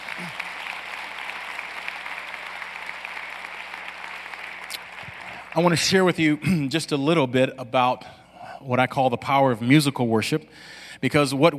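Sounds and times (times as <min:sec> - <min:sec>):
audience applause: 0:00.0 - 0:06.4
speech: 0:05.5 - 0:11.5.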